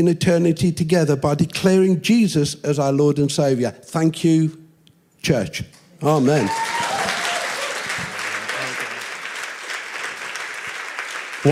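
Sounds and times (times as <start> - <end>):
speech: 0.0 - 4.6, 5.2 - 6.7
audience applause: 6.1 - 11.5.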